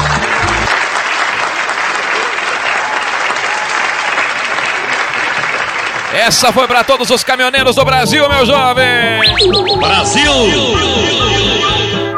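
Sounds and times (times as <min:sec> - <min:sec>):
applause sound effect: 0:00.0 - 0:07.6
speech: 0:06.2 - 0:11.8.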